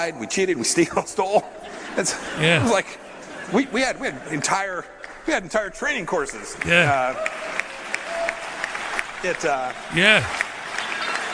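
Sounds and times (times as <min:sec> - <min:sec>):
speech: 0:00.0 - 0:07.6, 0:09.2 - 0:10.4
Texas A&M University audience laughing: 0:01.1 - 0:04.5, 0:06.5 - 0:07.9, 0:09.2 - 0:11.3
Texas A&M University audience applauding: 0:05.1 - 0:11.3.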